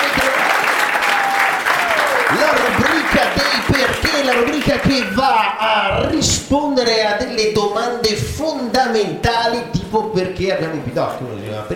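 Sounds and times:
children clapping: 0.0s - 5.3s
speech: 4.3s - 11.7s.

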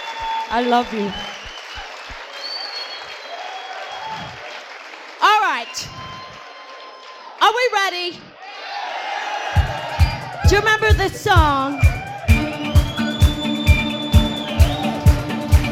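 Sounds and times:
audience applause: 0.0s - 7.4s, 12.2s - 15.7s
audience cheering: 0.0s - 7.4s, 8.2s - 15.7s
speech: 0.5s - 1.3s, 7.7s - 8.3s, 10.5s - 11.9s.

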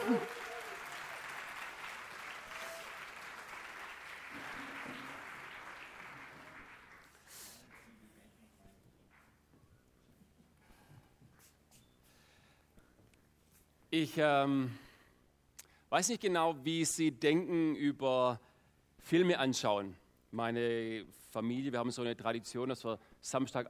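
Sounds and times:
audience applause for the band: 0.0s - 7.9s
speech: 0.1s - 0.4s, 14.0s - 14.8s, 15.9s - 23.6s.

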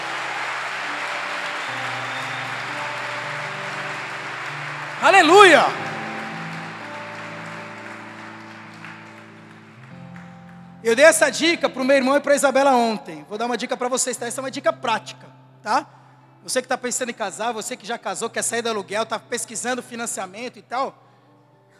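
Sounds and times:
audience applause: 0.0s - 11.6s
speech: 5.0s - 5.8s, 10.9s - 21.0s.

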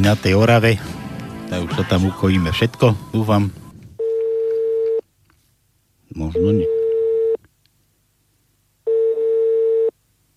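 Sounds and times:
speech: 0.0s - 0.9s, 1.5s - 3.6s, 6.1s - 6.8s
telephone line tone for called number unavailable: 4.0s - 5.0s, 6.4s - 7.4s, 8.9s - 9.9s.

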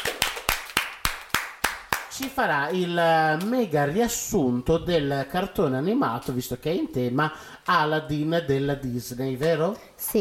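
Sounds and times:
hand claps: 0.0s - 3.6s
speech: 2.2s - 10.2s.

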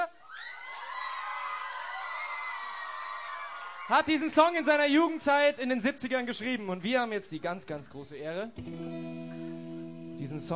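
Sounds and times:
concert crowd applauding and cheering: 0.3s - 4.6s
speech: 3.9s - 9.4s, 10.2s - 10.5s.

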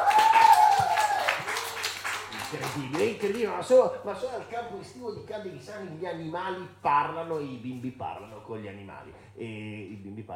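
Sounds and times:
applause: 0.0s - 3.6s
speech: 2.5s - 10.3s.

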